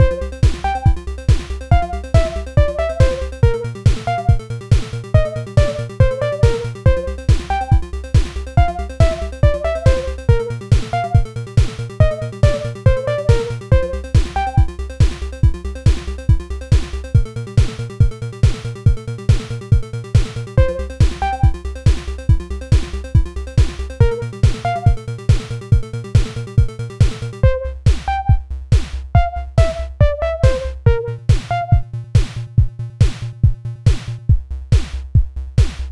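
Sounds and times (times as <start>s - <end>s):
music: 0.0s - 35.9s.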